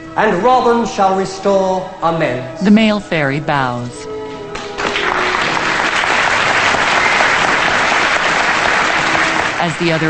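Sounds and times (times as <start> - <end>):
speech: 0.2 - 4.1, 9.6 - 10.0
theatre audience standing ovation: 4.5 - 10.0.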